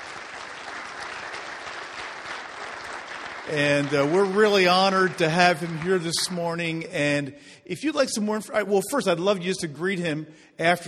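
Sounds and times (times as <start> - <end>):
church congregation applause welcoming a guest: 0.0 - 7.2
speech: 3.5 - 10.8.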